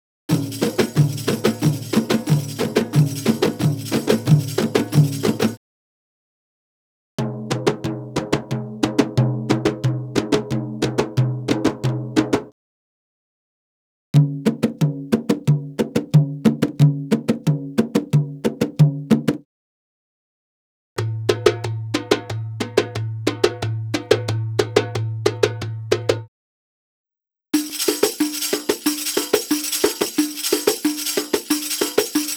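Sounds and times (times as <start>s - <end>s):
Arabic rhythm percussion: 0.3s - 5.6s, 7.2s - 12.5s, 14.2s - 19.5s, 21.0s - 26.2s, 27.6s - 32.3s.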